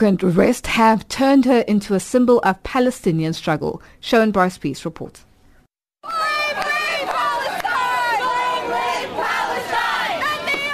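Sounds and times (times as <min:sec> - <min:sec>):
speech: 0:00.0 - 0:05.3
large crowd of protesters shouting and chanting inside a train station: 0:06.0 - 0:10.7.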